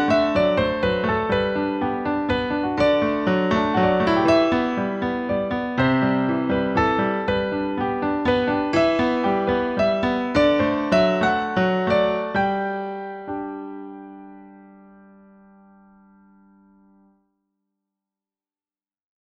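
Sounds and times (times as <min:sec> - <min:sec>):
piano waltz: 0:00.0 - 0:17.1.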